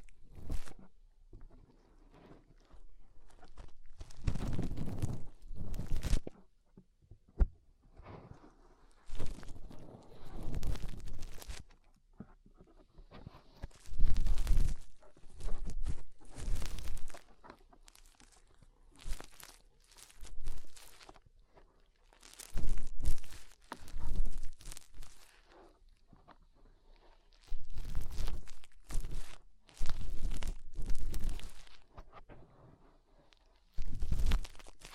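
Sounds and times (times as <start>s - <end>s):
fingers rubbing and scratching inside the ear: 2.5s - 6.3s, 8.9s - 11.7s, 12.9s - 21.2s, 22.1s - 25.6s, 26.9s - 31.9s, 33.3s - 34.9s.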